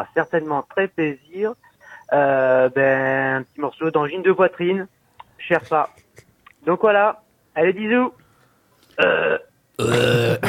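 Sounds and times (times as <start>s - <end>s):
speech: 0.0s - 6.0s, 6.6s - 8.2s, 9.0s - 10.4s
loud drawn-out belches: 9.0s - 10.4s.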